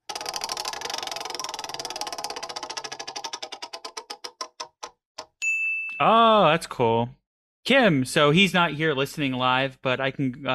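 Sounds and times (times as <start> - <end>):
prize wheel spinning and ticking: 0.0 - 5.3
speech: 6.0 - 10.5.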